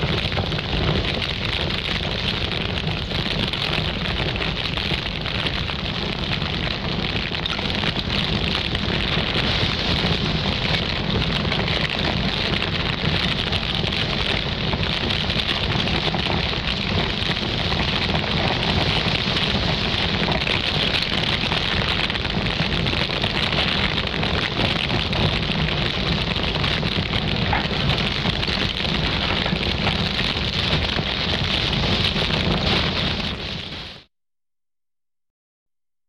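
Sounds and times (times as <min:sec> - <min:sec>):
fire burning: 0:00.0 - 0:34.1.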